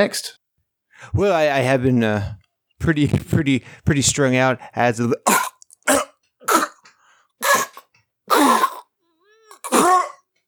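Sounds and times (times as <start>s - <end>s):
speech: 0.0s - 0.4s, 1.0s - 6.0s
person clearing throat and coughing: 5.3s - 8.9s, 9.5s - 10.3s.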